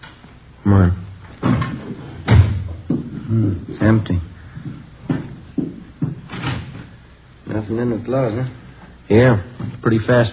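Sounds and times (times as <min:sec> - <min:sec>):
heavy thumps on a door as it is opened: 0:01.4 - 0:03.5, 0:04.6 - 0:06.9
speech: 0:03.3 - 0:04.3, 0:07.7 - 0:10.3.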